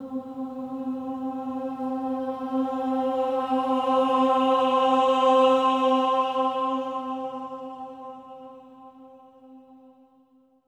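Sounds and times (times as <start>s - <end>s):
choir swelling ahs on C4: 0.0s - 8.4s.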